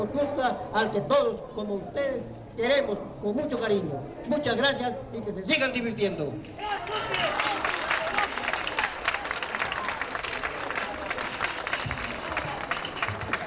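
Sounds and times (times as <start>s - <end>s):
speech: 0.0s - 7.5s
audience applause: 6.6s - 13.4s.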